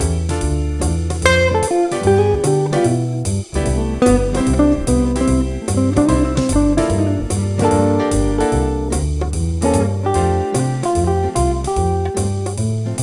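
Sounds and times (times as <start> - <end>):
guitar: 0.0 - 13.0.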